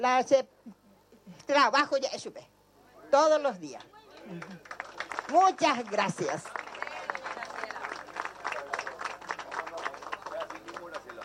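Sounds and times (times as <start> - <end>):
speech: 0.0 - 0.6, 1.5 - 2.5, 3.1 - 6.6
audience applause: 4.1 - 11.2.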